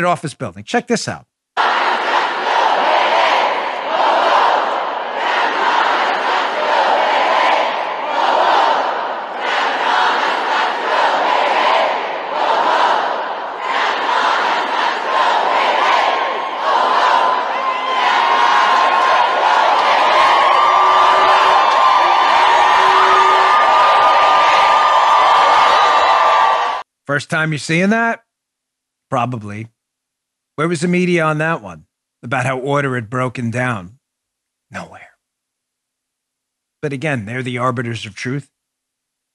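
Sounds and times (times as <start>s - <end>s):
speech: 0.0s - 1.3s, 27.2s - 28.2s, 29.1s - 29.7s, 30.6s - 34.0s, 36.8s - 38.5s
hundreds of protesters screaming and chanting indoors: 1.6s - 26.8s.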